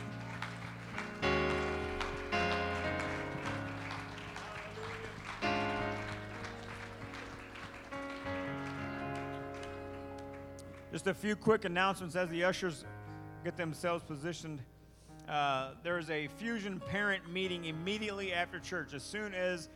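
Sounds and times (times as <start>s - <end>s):
audience clapping hands in praise: 0.0s - 11.2s
speech: 10.9s - 14.7s, 15.3s - 19.7s.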